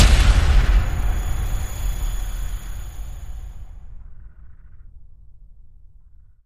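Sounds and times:
big head cracker hit: 0.0s - 3.9s.

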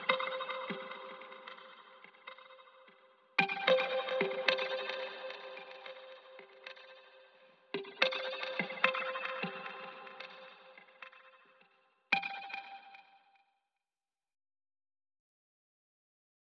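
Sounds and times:
guitars: 0.0s - 11.5s.

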